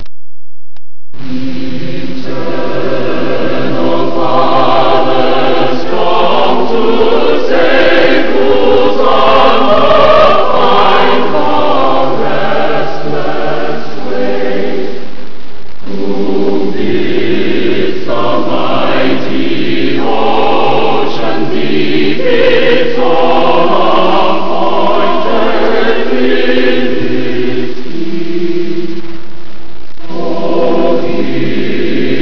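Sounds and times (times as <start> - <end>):
hymn vocal: 1.2 - 15.2, 15.8 - 29.2, 30.0 - 32.2.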